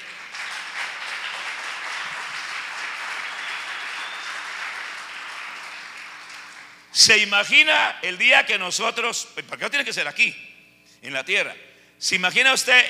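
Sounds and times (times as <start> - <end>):
audience applause: 0.0 - 6.8
speech: 7.0 - 12.8.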